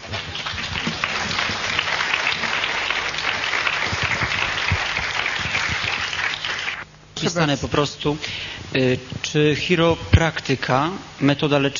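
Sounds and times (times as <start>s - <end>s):
audience applause: 0.0s - 6.8s
speech: 7.2s - 11.7s.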